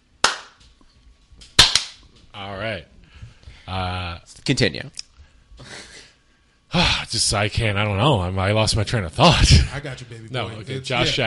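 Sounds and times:
high-five hand slaps: 0:00.2 - 0:00.6, 0:01.4 - 0:02.0
speech: 0:02.3 - 0:03.0, 0:03.7 - 0:05.0, 0:06.7 - 0:11.2.

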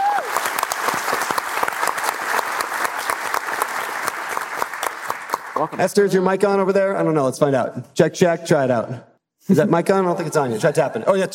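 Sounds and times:
audience round of applause: 0:00.0 - 0:05.8
speech: 0:05.6 - 0:11.3.

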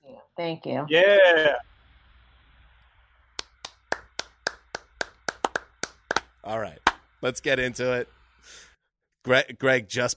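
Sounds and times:
speech: 0:00.4 - 0:01.7, 0:06.5 - 0:10.1
golf clap: 0:03.4 - 0:07.1.

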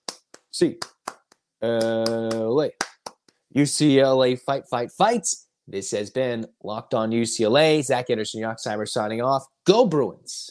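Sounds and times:
rhythmic eight-count clapping: 0:00.0 - 0:03.3
speech: 0:00.6 - 0:00.9, 0:01.6 - 0:02.9, 0:03.5 - 0:10.4.

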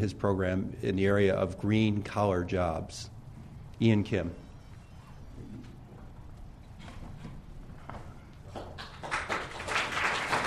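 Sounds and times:
speech: 0:00.0 - 0:03.2, 0:03.8 - 0:04.4
audience applause: 0:08.5 - 0:10.4.

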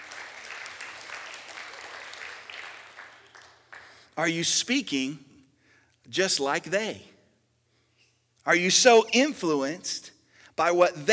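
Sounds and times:
audience applause: 0:00.0 - 0:04.1
speech: 0:04.2 - 0:05.3, 0:06.1 - 0:07.1, 0:08.4 - 0:11.1.

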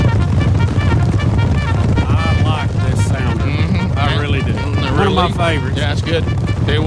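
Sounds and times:
buffalo stampede pounding hooves: 0:00.0 - 0:05.4
buffalo bellowing or grunting calls: 0:00.0 - 0:06.8
speech: 0:05.2 - 0:06.8.

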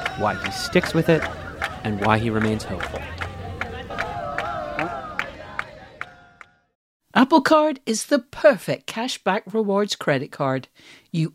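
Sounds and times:
murmur of voices: 0:00.0 - 0:06.3
passing group clapping in a steady beat: 0:00.0 - 0:06.7
speech: 0:00.2 - 0:03.3, 0:07.2 - 0:11.3.

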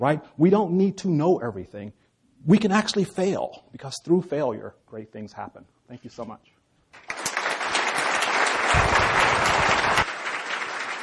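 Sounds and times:
speech: 0:00.0 - 0:07.0
applause: 0:07.0 - 0:11.0.

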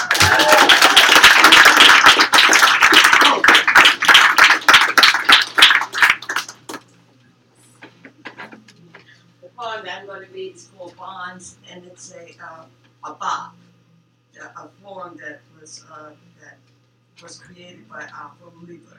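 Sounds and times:
audience applause: 0:00.0 - 0:06.8
speech: 0:11.4 - 0:13.6, 0:17.2 - 0:18.9.

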